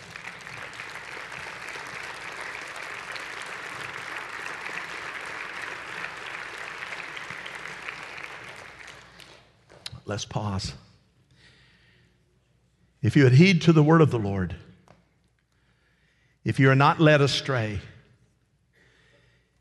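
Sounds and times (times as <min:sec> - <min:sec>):
audience clapping: 0:00.0 - 0:09.8
speech: 0:10.1 - 0:10.8, 0:13.0 - 0:14.7, 0:16.6 - 0:17.9.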